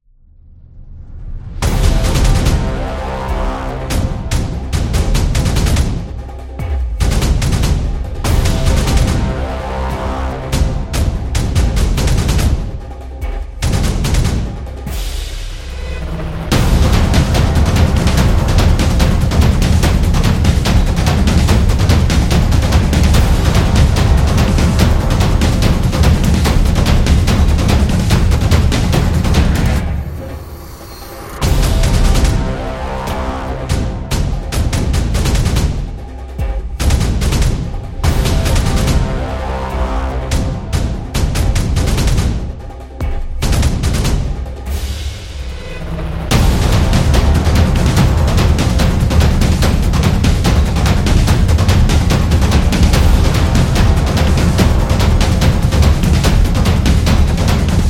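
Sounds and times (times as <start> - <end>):
war drums: 1.6 - 30.5, 31.3 - 57.8.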